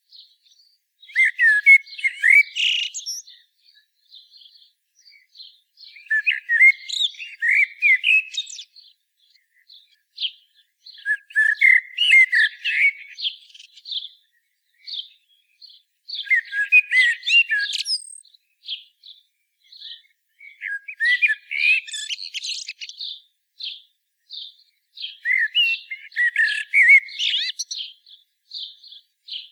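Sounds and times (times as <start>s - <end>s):
common blackbird song: 0.0s - 29.5s.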